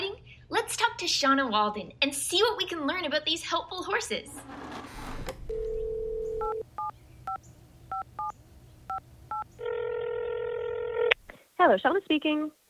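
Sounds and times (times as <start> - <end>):
speech: 1.0 - 4.7, 11.6 - 12.6
telephone dial tone: 5.5 - 6.6, 9.6 - 11.1
telephone ringing tone: 5.5 - 6.9, 9.3 - 11.1
touch-tone beeps of a phone number being dialed: 5.5 - 8.3.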